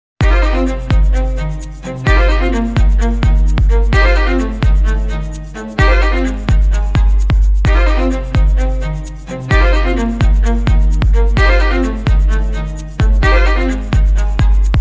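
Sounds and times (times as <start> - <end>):
bass music: 0.2 - 14.7.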